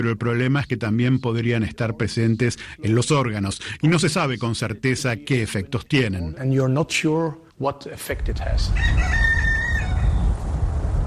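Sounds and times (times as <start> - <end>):
speech: 0.0 - 9.3
low outdoor rumble: 8.2 - 11.0
rooster crowing: 8.7 - 10.4.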